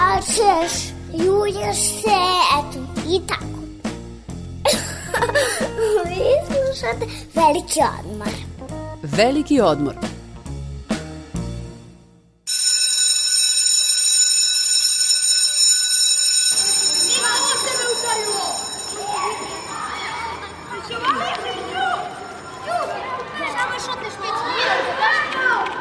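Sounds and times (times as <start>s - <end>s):
speech: 0.4s - 3.6s, 5.2s - 10.2s
laughter: 4.7s - 6.2s
electric school bell ringing to mark the end of class: 12.5s - 20.9s
busy hubbub of voices in the hallway: 16.8s - 25.7s.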